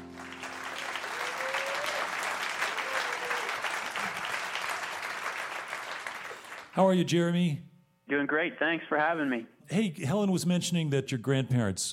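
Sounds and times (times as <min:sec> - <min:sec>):
audience applause for an Achievement Award winner: 0:00.0 - 0:06.8
speech: 0:06.8 - 0:11.9.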